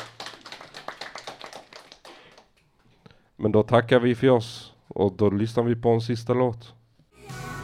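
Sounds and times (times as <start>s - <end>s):
audience applause: 0.0s - 2.5s
speech: 3.4s - 6.8s.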